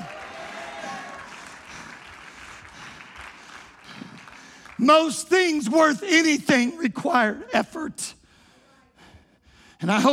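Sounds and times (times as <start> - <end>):
audience shouting: 0.0 - 1.4
audience clapping: 0.0 - 6.6
speech: 4.8 - 8.2, 9.8 - 10.1.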